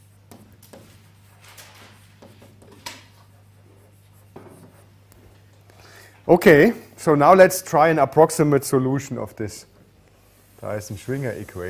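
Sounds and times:
lecturer writing on a board: 0:00.0 - 0:05.0
speech: 0:06.3 - 0:09.7, 0:10.6 - 0:11.6.

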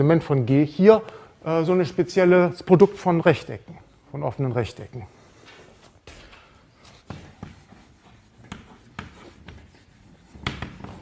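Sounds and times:
speech: 0:00.0 - 0:05.2
writing on a board during a maths lecture: 0:06.8 - 0:11.0.

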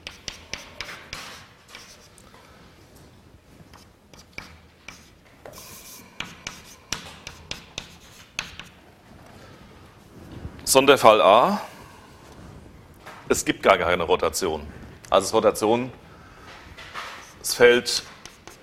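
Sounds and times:
writing on a board during a lecture: 0:00.0 - 0:02.2, 0:03.7 - 0:08.8, 0:17.0 - 0:18.6
speech: 0:10.7 - 0:11.7, 0:13.3 - 0:16.0, 0:17.6 - 0:18.1.

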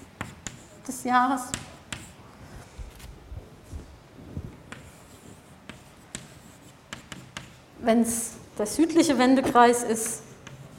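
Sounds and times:
pen handwriting strokes: 0:00.0 - 0:00.9, 0:04.7 - 0:07.6
speech: 0:00.9 - 0:01.7, 0:07.8 - 0:10.2.

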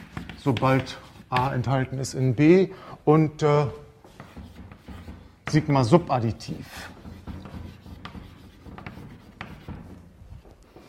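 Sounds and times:
writing on a board during a maths lecture: 0:00.0 - 0:01.8, 0:04.0 - 0:10.8
speech: 0:00.4 - 0:03.8, 0:05.5 - 0:07.0.

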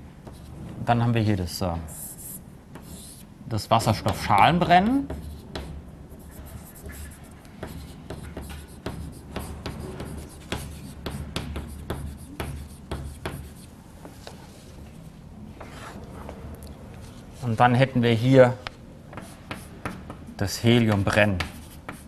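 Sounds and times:
low hum: 0:00.0 - 0:22.0
speech: 0:00.9 - 0:02.0, 0:03.5 - 0:05.2, 0:17.6 - 0:18.6, 0:20.4 - 0:21.5
chalk or marker writing on a board: 0:01.9 - 0:14.3, 0:15.6 - 0:16.0, 0:18.6 - 0:22.0.

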